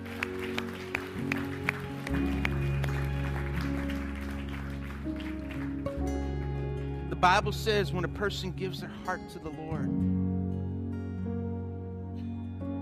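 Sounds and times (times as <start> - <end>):
church audience clapping: 0.0 - 8.0
sustained low musical drone: 0.0 - 12.8
speech: 7.2 - 10.2.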